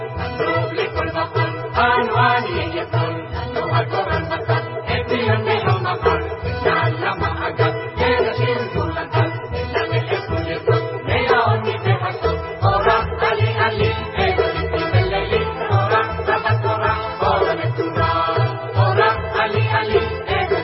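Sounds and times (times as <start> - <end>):
Israeli singers singing: 0.2 - 20.6.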